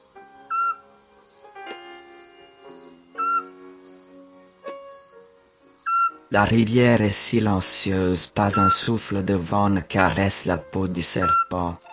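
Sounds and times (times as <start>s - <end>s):
scops owl calls: 0.4s - 0.8s, 3.2s - 3.6s, 5.8s - 6.3s, 8.5s - 8.9s, 11.2s - 11.6s
speech: 6.3s - 11.9s.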